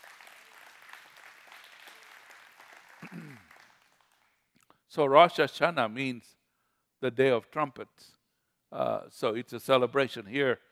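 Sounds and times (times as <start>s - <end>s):
crowd clapping: 0.0s - 4.4s
speech: 5.0s - 6.4s, 7.0s - 10.7s.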